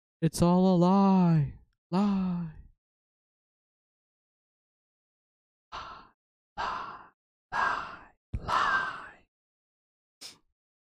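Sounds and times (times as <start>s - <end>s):
speech: 0.2s - 2.6s
wheezing breaths: 5.8s - 9.2s.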